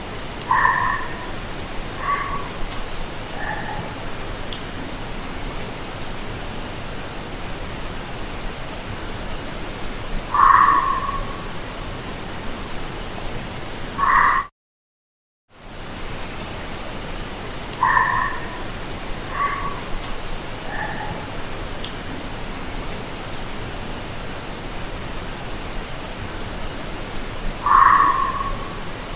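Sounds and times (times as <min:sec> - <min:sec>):
fox barking: 0:00.5 - 0:01.4, 0:01.9 - 0:02.6, 0:03.3 - 0:04.1, 0:10.3 - 0:11.5, 0:14.0 - 0:14.5, 0:17.8 - 0:19.9, 0:20.7 - 0:21.3, 0:27.6 - 0:28.8.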